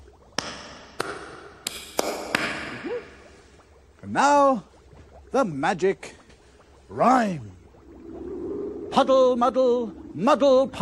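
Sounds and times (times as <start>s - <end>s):
hand clap: 0.4s - 2.7s
speech: 4.1s - 4.7s, 5.3s - 6.2s, 6.9s - 7.6s, 9.0s - 10.8s.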